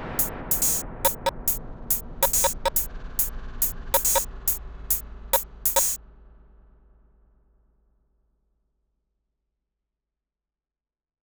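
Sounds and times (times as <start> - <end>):
factory beat of rhythmic synthesized noise: 0.0 - 6.0.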